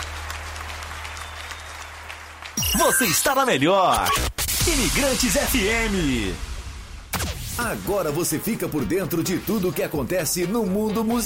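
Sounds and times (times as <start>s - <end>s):
applause: 0.0s - 3.6s
speech: 2.7s - 6.5s, 7.6s - 11.2s.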